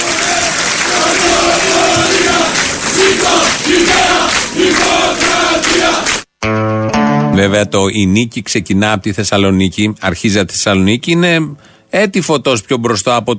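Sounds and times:
large crowd cheering and applauding at a political rally in Thessaloniki: 0.0s - 6.3s
speech: 7.4s - 13.3s.

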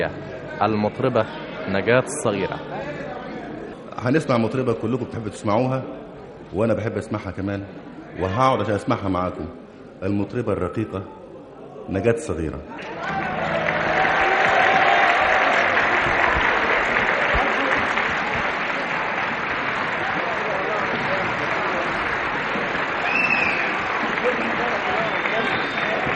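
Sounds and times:
speech: 0.0s - 3.2s, 4.0s - 11.2s, 11.9s - 13.1s
audience applauding a female romantic singer at a live show: 12.8s - 26.1s.

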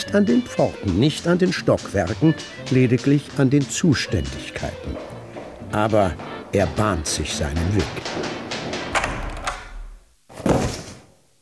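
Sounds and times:
shuffling: 0.0s - 11.2s
speech: 0.1s - 5.1s, 5.7s - 8.4s
sharp knocks: 4.5s - 11.0s
object slammed down hard onto a table: 8.1s - 11.0s.

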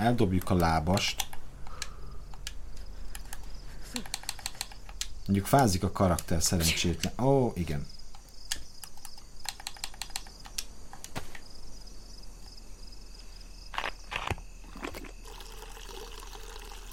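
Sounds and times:
speech: 0.0s - 1.3s, 5.3s - 8.0s
water being poured out: 14.7s - 16.9s.

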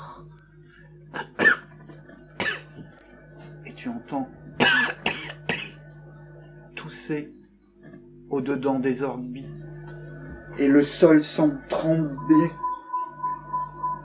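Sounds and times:
coughing: 0.1s - 7.3s
speech: 1.1s - 1.4s, 3.8s - 5.4s, 6.9s - 7.4s, 8.3s - 9.5s, 10.6s - 12.6s.

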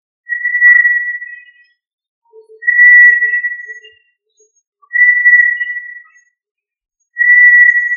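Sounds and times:
tinamou of family Tinamidae whistling: 0.3s - 1.6s, 2.6s - 3.9s, 4.9s - 6.2s, 7.2s - 7.9s.

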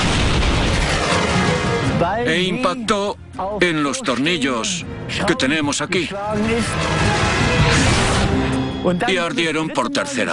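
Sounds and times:
tank cannon firing its second shot: 0.0s - 2.0s, 6.6s - 8.5s
speech: 2.2s - 7.9s, 8.8s - 10.3s.

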